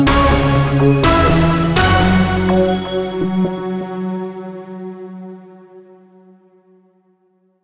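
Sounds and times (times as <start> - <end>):
news sounder jingle: 0.1 - 4.5.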